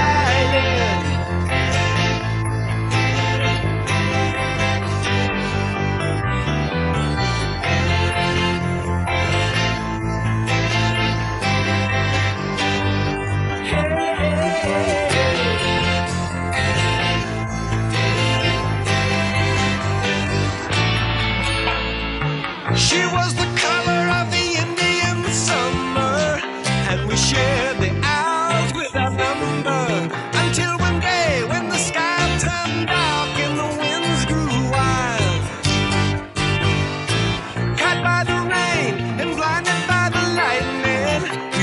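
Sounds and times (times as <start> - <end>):
drumless music track: 0.0 - 41.6.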